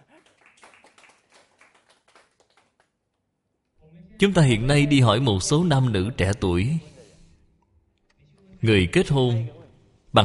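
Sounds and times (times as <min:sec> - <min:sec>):
audience applause: 0:00.0 - 0:03.0
speech: 0:04.2 - 0:06.9, 0:08.6 - 0:10.2.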